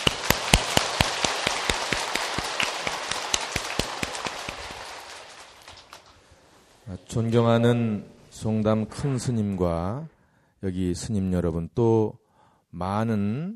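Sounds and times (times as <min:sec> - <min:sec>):
audience applause: 0:00.0 - 0:06.2
speech: 0:07.1 - 0:13.5.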